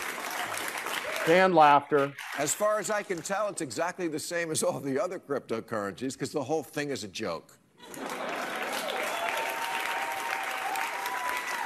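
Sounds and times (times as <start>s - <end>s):
weak audience applause in played clip: 0.0s - 2.7s, 7.8s - 11.6s
speech: 1.2s - 8.0s.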